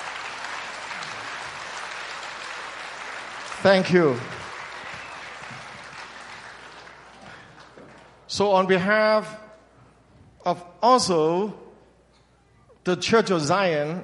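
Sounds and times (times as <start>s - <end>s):
large crowd clapping: 0.0s - 8.3s
speech: 3.6s - 4.4s, 8.4s - 9.4s, 10.4s - 11.6s, 12.8s - 14.0s.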